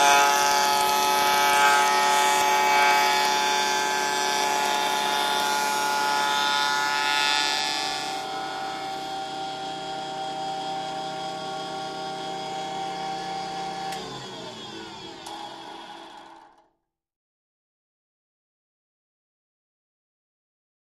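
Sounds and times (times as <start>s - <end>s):
wood shaper shaping wood with high pitched whine: 0.0s - 16.6s.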